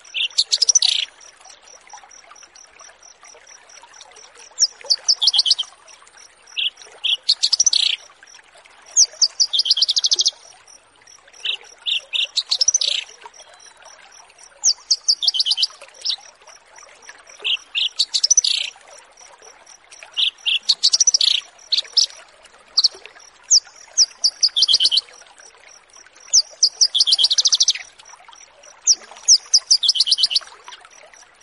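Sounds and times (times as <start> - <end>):
Horsfield's bush lark song: 0.1 - 1.1, 4.6 - 5.7, 6.6 - 8.1, 11.4 - 13.8, 14.6 - 16.2, 17.4 - 18.7, 20.2 - 22.2, 22.8 - 25.1, 26.3 - 27.9, 28.9 - 30.5.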